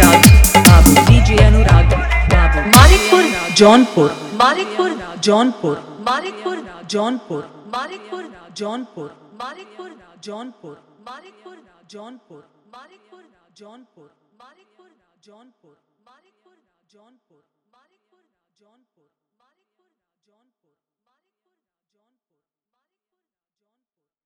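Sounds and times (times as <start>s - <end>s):
Bhojpuri dholak bass music mix: 0.0s - 5.2s.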